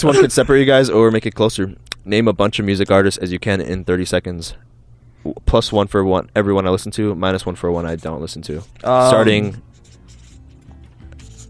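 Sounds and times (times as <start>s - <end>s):
speech: 0.0s - 9.7s
pen strokes on paper: 7.7s - 11.4s.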